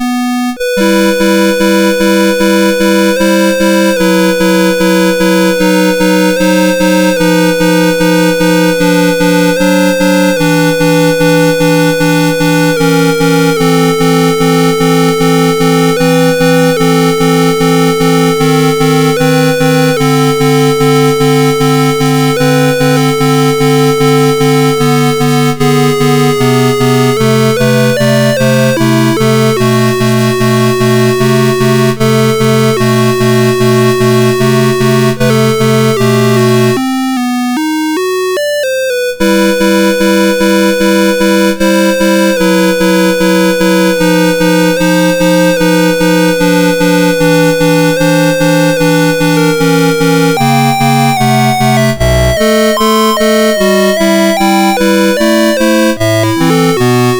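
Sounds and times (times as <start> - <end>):
prelude in E minor on MOS6581R2 chip: 0.0 - 57.1.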